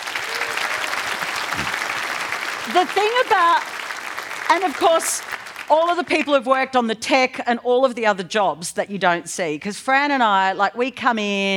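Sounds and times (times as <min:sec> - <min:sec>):
audience applause for a producer at a live podcast recording: 0:00.0 - 0:05.8
speech: 0:02.7 - 0:03.7, 0:04.5 - 0:11.5.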